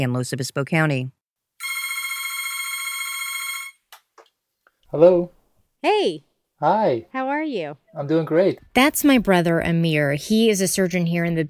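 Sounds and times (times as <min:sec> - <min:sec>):
speech: 0:00.0 - 0:01.2, 0:04.9 - 0:11.4
telephone ringing with electronic trill: 0:01.6 - 0:03.9.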